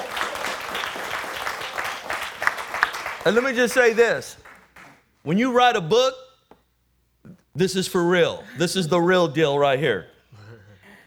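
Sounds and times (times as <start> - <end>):
audience applause: 0.0 - 5.0
speech: 3.2 - 4.4, 5.2 - 6.2, 7.6 - 10.1.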